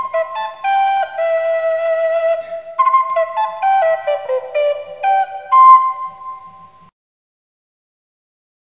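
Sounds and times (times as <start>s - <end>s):
flute playing dance music: 0.0s - 6.8s.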